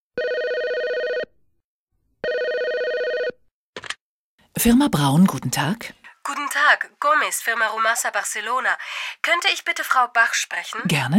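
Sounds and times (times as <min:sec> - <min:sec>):
telephone ringing for an incoming call: 0:00.2 - 0:01.3, 0:02.2 - 0:03.4
speech: 0:04.6 - 0:11.1.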